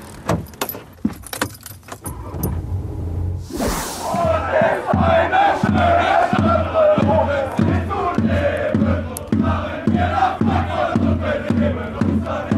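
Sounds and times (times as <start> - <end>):
jingling and clatter: 0.0 - 2.3
crowd of football fans chanting on a march: 3.6 - 12.5.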